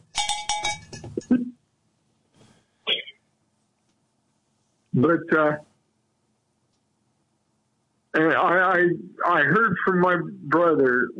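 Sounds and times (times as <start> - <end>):
cowbells clanking: 0.0 - 1.3
speech: 5.0 - 5.7, 8.2 - 11.1.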